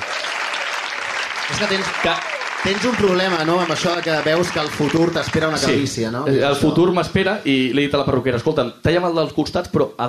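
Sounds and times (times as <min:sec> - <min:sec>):
applause: 0:00.0 - 0:05.8
speech: 0:01.5 - 0:10.0.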